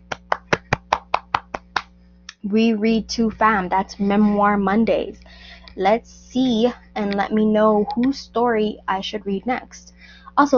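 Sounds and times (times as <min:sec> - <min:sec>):
person clapping: 0:00.0 - 0:01.9
speech: 0:02.4 - 0:10.5.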